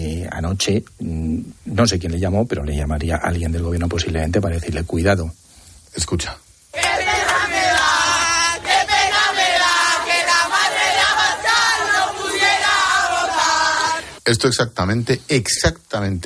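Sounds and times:
speech: 0.3s - 6.4s, 14.3s - 16.2s
crowd chanting a name: 6.7s - 14.2s.

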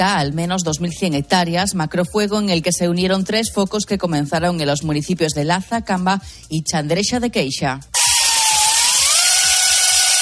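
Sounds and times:
speech: 0.0s - 8.0s
chainsaw engine revving while cutting firebreak lines: 8.0s - 10.1s.

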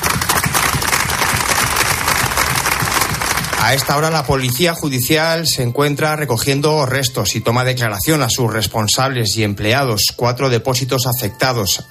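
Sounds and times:
applause at a memorial gathering in the town hall square: 0.0s - 5.1s
speech: 3.6s - 11.9s.

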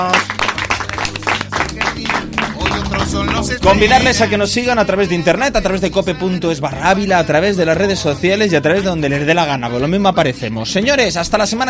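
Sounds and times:
audience applause: 0.0s - 3.6s
speech: 3.4s - 11.6s.

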